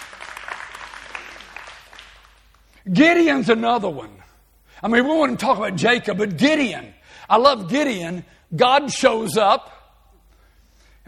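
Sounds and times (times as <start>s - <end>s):
congregation clapping hands in a clap offering: 0.0s - 3.3s
speech: 2.8s - 4.2s, 4.8s - 9.8s.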